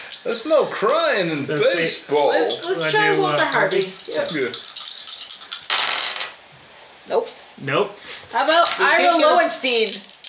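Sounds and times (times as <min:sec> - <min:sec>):
speech: 0:00.2 - 0:04.7, 0:07.1 - 0:10.2
dice shaken and rolled: 0:01.7 - 0:06.4, 0:08.6 - 0:10.2.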